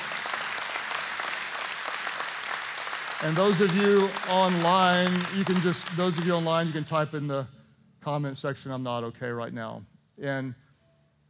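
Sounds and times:
congregation clapping during a church healing service: 0.0 - 7.0
speech: 3.2 - 10.6.

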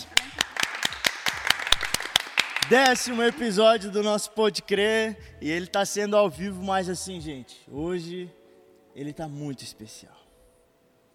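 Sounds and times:
small group hand claps: 0.0 - 3.6
speech: 2.7 - 8.4, 9.0 - 10.2.

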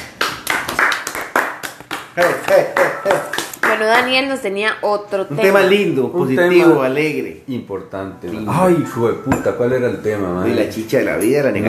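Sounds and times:
hands clapping: 0.0 - 4.1
laughter: 2.2 - 3.4
speech: 2.2 - 11.6.

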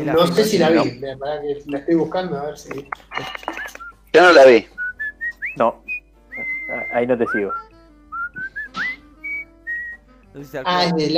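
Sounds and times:
speech: 0.0 - 3.6, 4.2 - 4.8, 5.6 - 5.9, 6.7 - 7.6, 10.4 - 11.1
person whistling a film song melody: 4.8 - 10.3.

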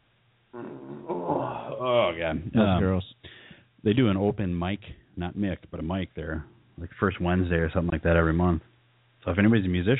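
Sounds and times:
person burping: 0.5 - 2.8
speech: 1.8 - 3.2, 3.8 - 9.9.

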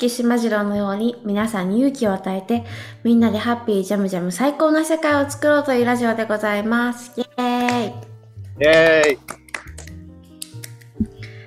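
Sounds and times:
speech: 0.0 - 9.4
hand clapping: 7.6 - 8.0, 8.6 - 11.1.

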